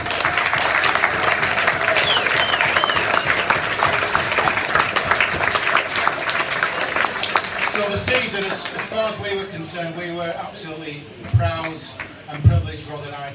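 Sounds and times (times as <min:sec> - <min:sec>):
audience applause: 0:00.0 - 0:09.2
speech: 0:08.1 - 0:13.3.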